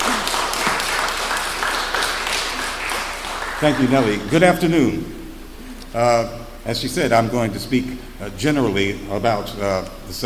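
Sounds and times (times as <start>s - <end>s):
audience applause: 0.0s - 4.6s
speech: 3.6s - 5.2s, 5.9s - 10.2s.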